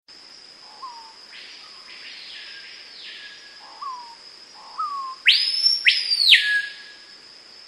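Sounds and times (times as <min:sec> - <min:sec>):
constant high insect hum: 0:00.1 - 0:07.6
screaming piha whistled call: 0:04.8 - 0:07.0.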